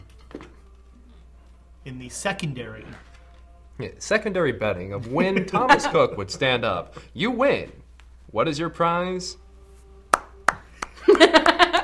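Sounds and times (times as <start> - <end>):
speech: 1.8 - 3.1, 3.8 - 9.4
laughter: 5.0 - 7.1, 10.9 - 11.8
sarcastic clap: 10.1 - 11.1.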